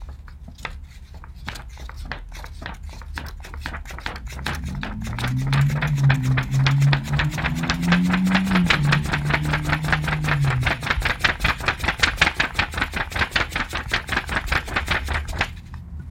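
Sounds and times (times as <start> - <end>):
fan: 0.0 - 16.1.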